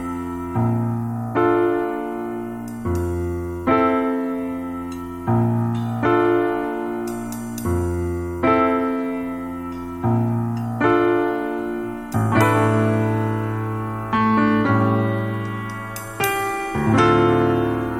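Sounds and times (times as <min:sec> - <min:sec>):
piano: 0:00.0 - 0:17.9.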